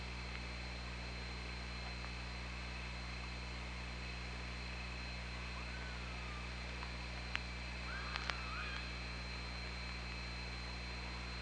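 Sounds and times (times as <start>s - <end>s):
underwater hum and hiss: 0.0s - 11.4s
killer whale whistle calls: 5.4s - 6.6s, 7.9s - 9.0s
killer whale sharp clicks: 8.1s - 8.9s.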